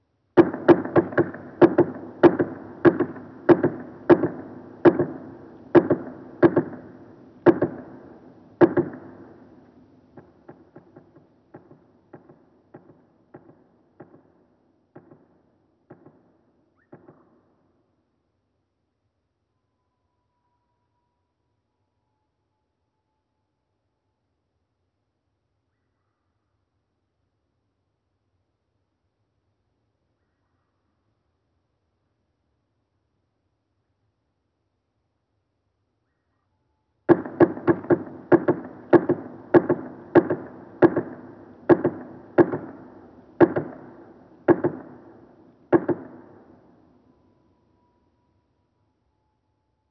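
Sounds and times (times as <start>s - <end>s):
northern flicker slowed down: 0.4s - 14.2s, 37.1s - 46.8s.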